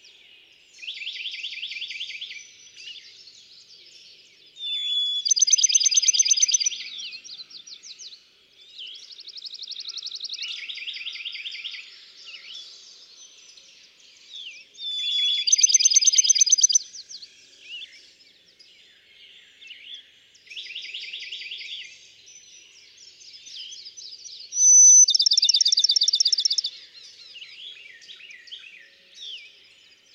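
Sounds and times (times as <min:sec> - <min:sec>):
Bachman's sparrow song: 0:00.0 - 0:30.1
other birds twittering: 0:04.7 - 0:07.9, 0:14.9 - 0:16.9, 0:23.1 - 0:28.6.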